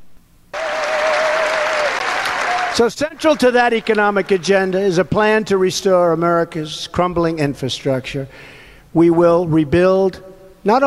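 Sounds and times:
Republican crowd cheering and applauding at a political speech: 0:00.5 - 0:04.8
speech: 0:02.8 - 0:10.8.

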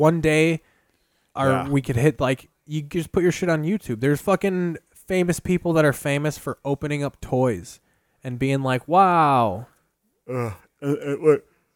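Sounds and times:
speech: 0:00.0 - 0:00.7, 0:01.4 - 0:09.7, 0:10.3 - 0:11.5
yawn: 0:10.3 - 0:11.5.

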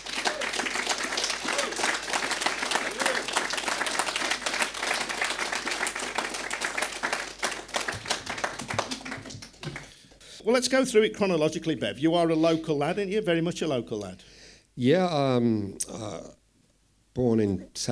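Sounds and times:
audience applause at a live evening talk event: 0:00.0 - 0:10.0
speech: 0:10.5 - 0:16.4, 0:17.2 - 0:17.9.

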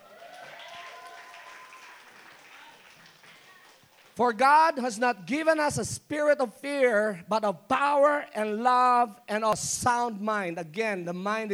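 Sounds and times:
crowd applause: 0:00.0 - 0:04.2
faint cheering voices: 0:00.0 - 0:04.2
speech: 0:04.2 - 0:11.5.

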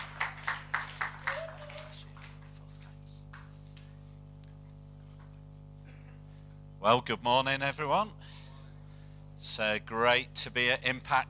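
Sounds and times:
audience clapping: 0:00.0 - 0:05.4
low steady hum: 0:00.0 - 0:11.2
speech: 0:06.8 - 0:08.2, 0:09.4 - 0:11.2.

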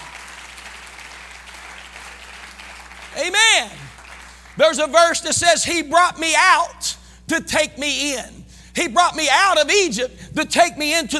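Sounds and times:
audience clapping hands: 0:00.0 - 0:05.0
speech: 0:03.2 - 0:03.8, 0:04.6 - 0:11.1.

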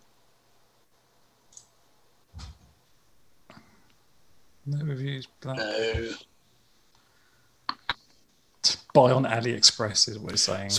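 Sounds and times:
mouse clicks on a website's buy now button: 0:01.5 - 0:01.8
speech: 0:04.7 - 0:06.3, 0:09.0 - 0:10.7.

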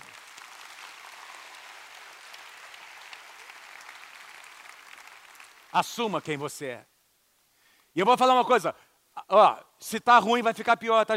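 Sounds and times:
audience applauding: 0:00.0 - 0:06.4
speech: 0:05.7 - 0:06.9, 0:08.0 - 0:11.1.

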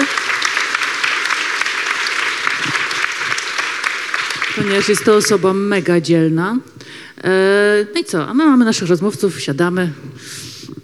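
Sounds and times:
audience applause: 0:00.0 - 0:05.7
speech: 0:04.6 - 0:10.4.

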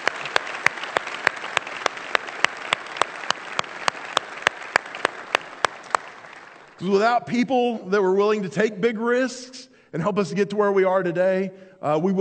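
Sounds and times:
audience round of applause: 0:00.0 - 0:06.8
speech: 0:06.8 - 0:12.1.

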